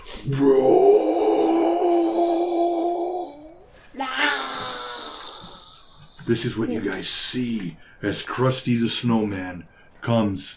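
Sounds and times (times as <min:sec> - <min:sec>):
speech: 0:00.2 - 0:00.7, 0:06.3 - 0:10.5
person imitating a monster's roar with a gravelly growl: 0:00.2 - 0:06.0.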